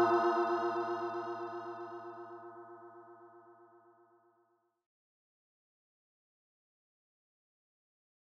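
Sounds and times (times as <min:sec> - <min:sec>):
modular synthesizer: 0:00.0 - 0:03.4.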